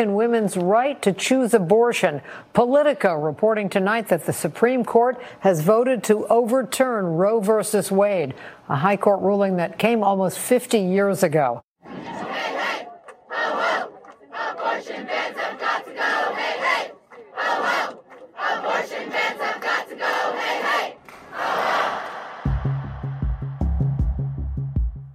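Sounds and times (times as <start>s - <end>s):
speech: 0.0s - 12.2s
protesters chanting outside the US Supreme Court in Washington DC: 11.8s - 23.8s.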